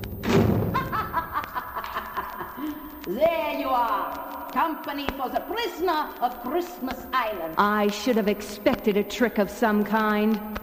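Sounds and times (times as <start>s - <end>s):
heavy cell door slamming shut: 0.2s - 0.8s
laughter: 0.7s - 3.1s
speech: 3.1s - 10.6s.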